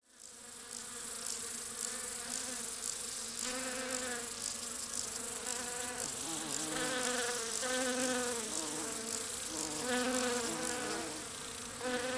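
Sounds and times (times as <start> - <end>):
bees buzzing: 2.5 - 12.1.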